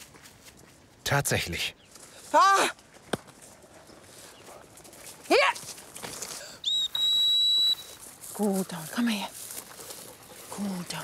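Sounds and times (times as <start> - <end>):
speech: 1.1 - 2.8, 5.3 - 5.7, 8.4 - 9.4, 10.6 - 11.0
person whistling to call a hunting dog back: 6.6 - 8.0.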